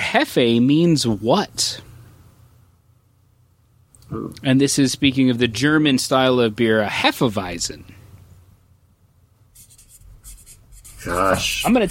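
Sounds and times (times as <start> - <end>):
low quiet hum: 0.0 - 11.9
speech: 0.1 - 1.9, 4.1 - 8.0, 11.0 - 11.9
pen scratching on paper while writing an answer: 9.6 - 11.9.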